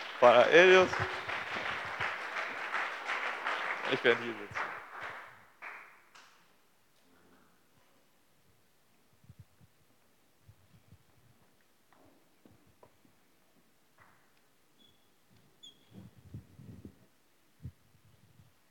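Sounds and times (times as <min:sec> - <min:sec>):
audience applauding: 0:00.0 - 0:06.0
speech: 0:00.2 - 0:01.2, 0:03.9 - 0:04.6.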